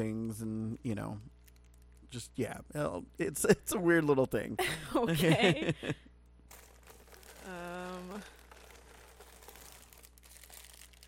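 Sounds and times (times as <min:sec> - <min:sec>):
speech: 0:00.0 - 0:01.4, 0:02.1 - 0:06.1, 0:07.5 - 0:08.4
laughter: 0:04.6 - 0:06.1
plastic bird netting crinkling and rustling while unpacked: 0:06.5 - 0:11.0.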